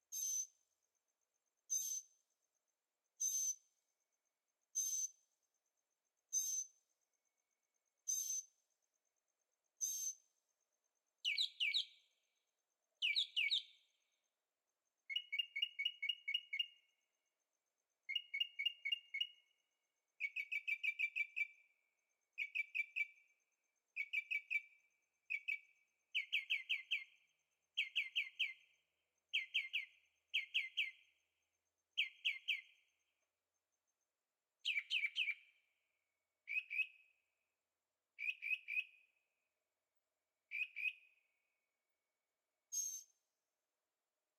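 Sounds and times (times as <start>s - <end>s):
bird singing rapid chirped notes: 0.1s - 0.6s, 1.7s - 2.2s, 3.2s - 3.8s, 6.3s - 6.8s, 8.0s - 8.6s, 11.2s - 12.4s, 13.0s - 14.2s, 15.0s - 17.0s, 18.0s - 19.6s, 20.2s - 33.2s, 34.6s - 37.3s, 38.2s - 39.3s, 40.5s - 41.6s, 42.7s - 43.2s.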